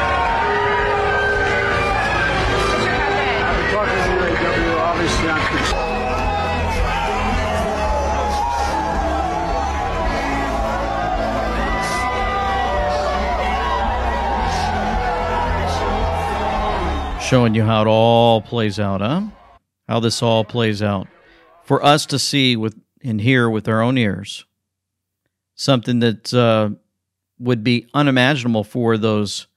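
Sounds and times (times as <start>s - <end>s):
crowd booing: 0.0s - 21.7s
speech: 17.3s - 24.5s, 25.6s - 26.8s, 27.4s - 29.5s.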